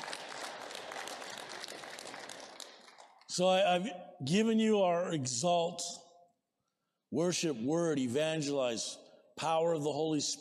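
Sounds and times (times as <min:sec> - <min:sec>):
audience clapping: 0:00.0 - 0:03.5
speech: 0:03.4 - 0:06.0, 0:07.1 - 0:10.4.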